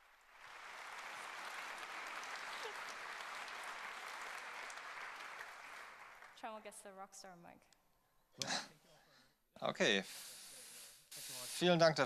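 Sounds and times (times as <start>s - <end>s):
audience applause: 0.0s - 6.5s
speech: 6.4s - 7.8s, 8.4s - 8.8s, 9.6s - 10.4s, 11.5s - 12.0s.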